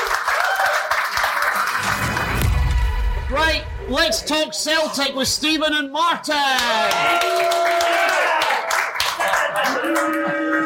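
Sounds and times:
audience applause: 0.0 - 2.7, 6.6 - 10.6
speech: 3.4 - 8.0.

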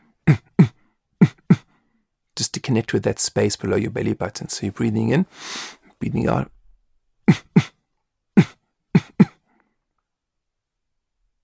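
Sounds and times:
person imitating a leopard grunting: 0.2 - 1.7, 7.3 - 7.8, 8.4 - 9.4
speech: 2.7 - 6.6.

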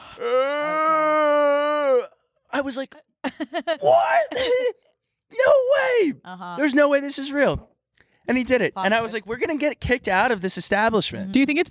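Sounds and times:
person imitating a loud exaggerated yawn: 0.0 - 2.2
speech: 2.6 - 7.7, 8.3 - 11.6.

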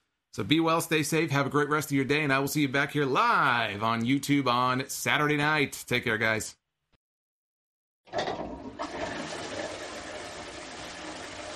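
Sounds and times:
speech: 0.4 - 6.6
toilet flushing: 8.1 - 11.5.

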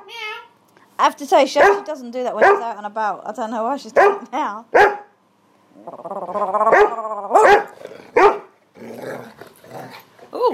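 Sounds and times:
speech: 1.0 - 4.9, 5.8 - 6.7
dog barking and growling: 1.6 - 2.8, 3.9 - 5.1, 5.8 - 10.5.

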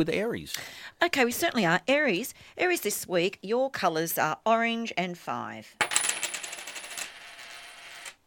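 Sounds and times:
speech: 0.0 - 5.9
coin landing on an I Ching card: 5.8 - 8.2.

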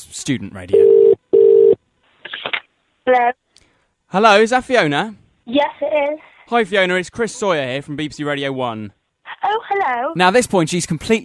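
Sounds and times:
speech: 0.2 - 1.2, 3.1 - 3.4, 4.1 - 11.2
telephone dialing tones for a prank call: 0.8 - 1.8.

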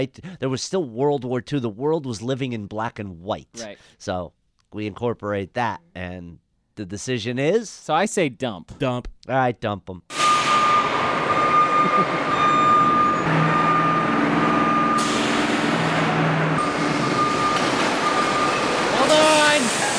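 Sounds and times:
speech: 0.0 - 10.2, 11.8 - 12.5
truck diesel engine rumbling: 10.1 - 19.9
truck reversing alarm beeping: 10.1 - 19.9.

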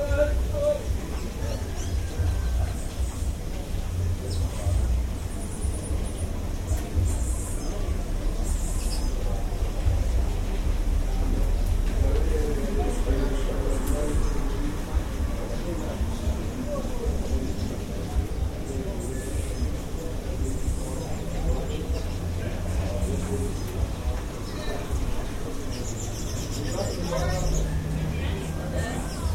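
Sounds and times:
afternoon ambience in Barbados: 0.0 - 29.3.

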